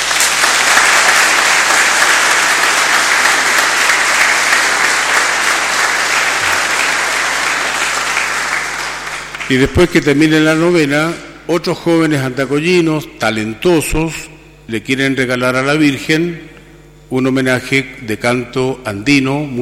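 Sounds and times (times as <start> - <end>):
audience applause: 0.0 - 9.8
speech: 9.5 - 19.6.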